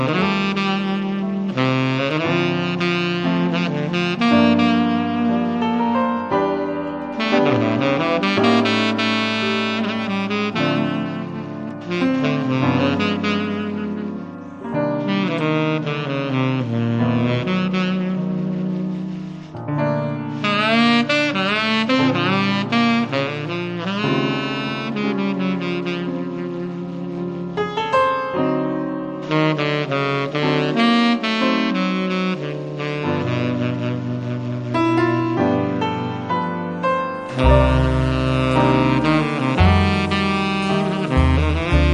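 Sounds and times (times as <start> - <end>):
piano quartet playing: 0.0 - 41.9.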